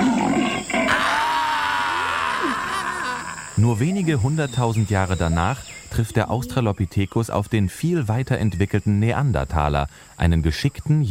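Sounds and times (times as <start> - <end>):
rough roar like a sabre-toothed tiger: 0.0 - 3.6
speech: 3.6 - 11.1.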